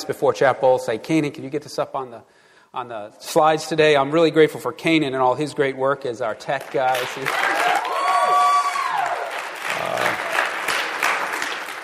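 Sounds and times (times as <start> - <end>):
speech: 0.0 - 7.5
crowd clapping: 6.5 - 11.8
high whoop or whistle: 7.5 - 9.3.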